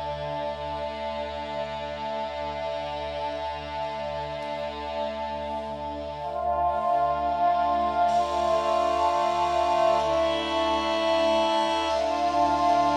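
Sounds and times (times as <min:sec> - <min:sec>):
music: 0:00.0 - 0:12.9.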